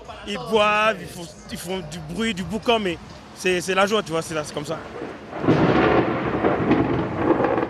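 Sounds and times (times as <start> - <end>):
speech: 0.2 - 5.2
heavy rain in Mexico: 0.6 - 7.6
thunderstorm in Mexico: 4.8 - 7.6.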